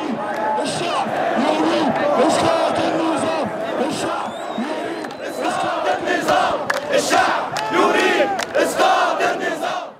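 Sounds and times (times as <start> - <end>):
large protest crowd chanting a slogan: 0.0 - 9.9
people clapping: 5.0 - 9.3.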